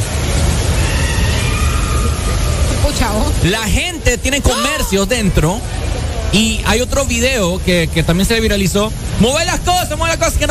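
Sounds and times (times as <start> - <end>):
heavy rainstorm pouring down indoors through a false ceiling: 0.0 - 10.4
speech: 2.9 - 10.4.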